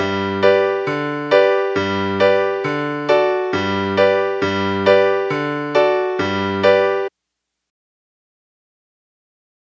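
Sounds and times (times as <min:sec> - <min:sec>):
music accompaniment in G: 0:00.0 - 0:07.1.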